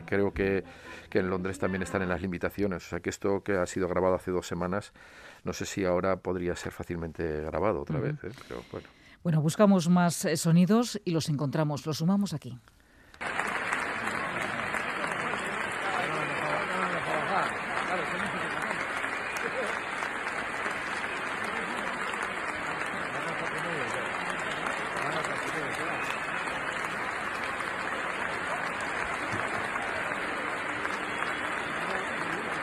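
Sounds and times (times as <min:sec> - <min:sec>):
speech: 0:00.1 - 0:12.8
audience ovation applause: 0:13.2 - 0:32.6.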